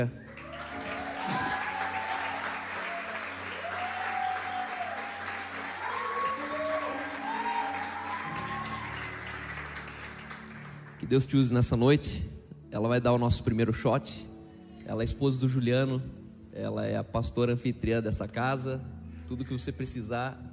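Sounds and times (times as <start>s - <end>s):
speech: 0.0s - 0.2s, 1.3s - 1.6s, 11.1s - 14.3s, 14.9s - 20.5s
loud audience applause: 0.0s - 11.3s.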